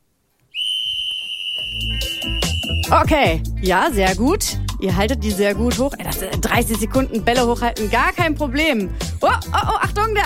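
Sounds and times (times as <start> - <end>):
whistle blown during a ball-juggling drill: 0.5 - 3.1
speech: 1.8 - 10.2.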